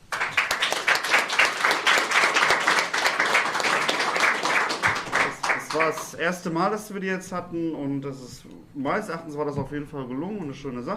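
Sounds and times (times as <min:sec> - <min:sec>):
crowd applauding: 0:00.0 - 0:06.1
speech: 0:05.8 - 0:10.9.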